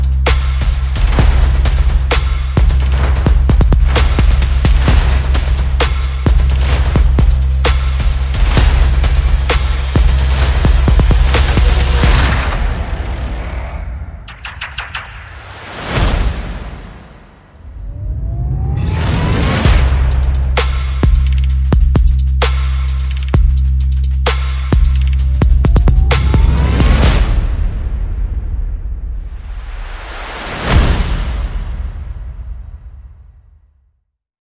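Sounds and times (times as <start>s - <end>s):
percussion: 0.0s - 12.9s, 14.2s - 16.8s, 19.5s - 29.5s
bass: 0.0s - 13.4s, 19.6s - 29.5s
sound effects: 3.9s - 21.7s, 24.3s - 31.7s.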